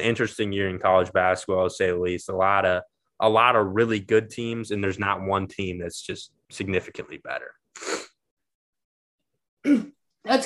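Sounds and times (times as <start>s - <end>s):
speech: 0.0s - 8.1s, 9.6s - 10.4s
cough: 9.6s - 10.0s.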